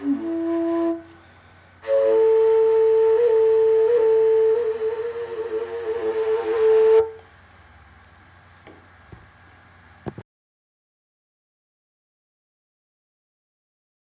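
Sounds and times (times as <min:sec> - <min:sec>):
fujara flute: 0:00.0 - 0:07.4.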